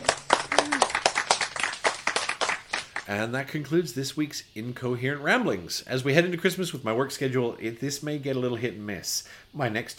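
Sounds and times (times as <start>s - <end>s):
hand clapping: 0.0s - 3.1s
speech: 3.1s - 9.9s.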